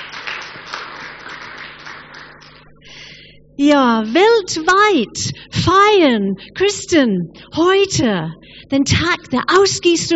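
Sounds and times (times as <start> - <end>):
audience applause: 0.0 - 2.6
speech: 3.6 - 10.1.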